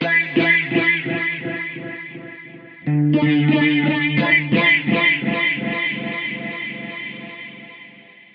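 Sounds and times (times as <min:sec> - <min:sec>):
distorted guitar with phaser delays: 0:00.0 - 0:08.3.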